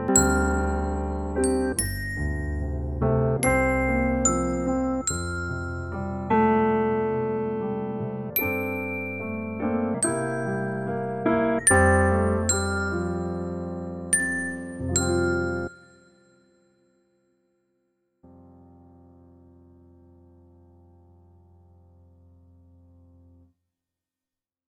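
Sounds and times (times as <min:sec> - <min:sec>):
cat music: 0:00.1 - 0:07.2, 0:08.3 - 0:15.8.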